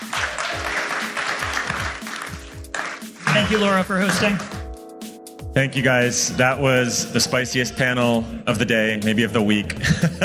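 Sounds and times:
audience applause: 0.0 - 4.6
speech: 3.4 - 4.6, 5.6 - 10.2
laughter: 9.7 - 10.2.

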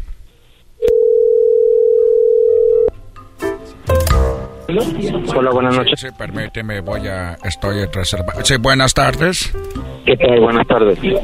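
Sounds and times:
telephone dial tone of a call: 0.8 - 2.9
speech: 4.7 - 11.2.

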